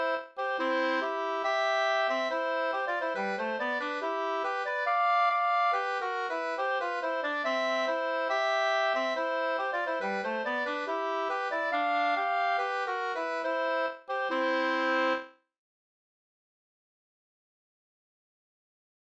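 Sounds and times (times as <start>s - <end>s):
bridal march music: 0.1s - 15.2s.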